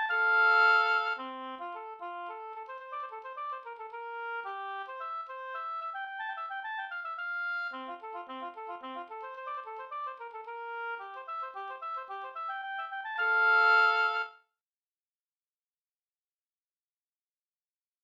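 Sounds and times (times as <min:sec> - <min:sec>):
polska folk dance tune: 0:00.0 - 0:14.3.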